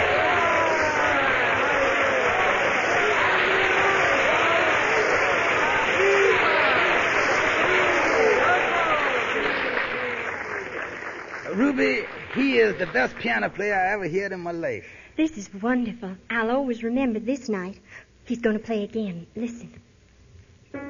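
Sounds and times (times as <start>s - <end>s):
audience applause and cheers: 0.0s - 14.1s
speech: 12.6s - 19.8s.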